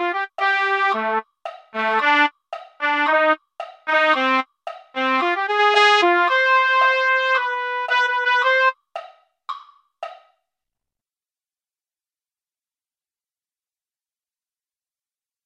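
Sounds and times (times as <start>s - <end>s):
trumpet: 0.0s - 8.8s.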